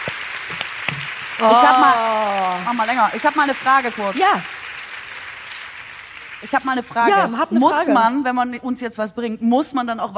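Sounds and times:
audience applause: 0:00.0 - 0:07.7
speech: 0:01.4 - 0:04.6, 0:06.4 - 0:10.1.

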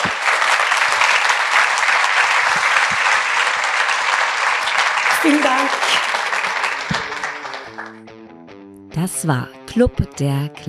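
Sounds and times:
audience applause: 0:00.0 - 0:08.1
speech: 0:05.2 - 0:06.0, 0:09.1 - 0:10.6.

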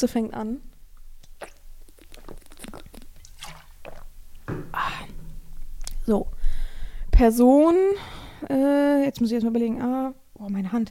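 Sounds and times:
speech: 0:00.0 - 0:00.7, 0:06.1 - 0:06.4, 0:07.2 - 0:10.8
person sipping a drink and swallowing: 0:01.0 - 0:06.0.

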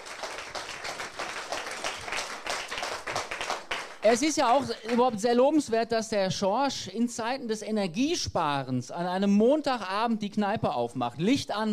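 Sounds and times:
audience applause: 0:00.0 - 0:05.2
speech: 0:04.0 - 0:11.7.

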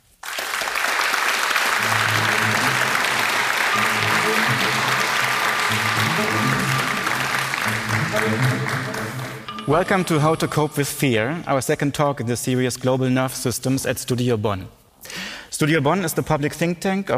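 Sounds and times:
audience clapping at a public talk at Studio Bonn: 0:00.0 - 0:10.3
speech: 0:08.2 - 0:08.9, 0:09.7 - 0:14.8, 0:15.6 - 0:17.1.

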